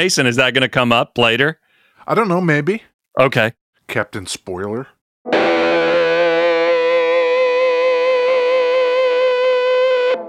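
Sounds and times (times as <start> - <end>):
speech: 0.0 - 5.6
guitar through Spaceman Effects Sputnik 3 harmonic fuzz pedal: 5.3 - 10.2.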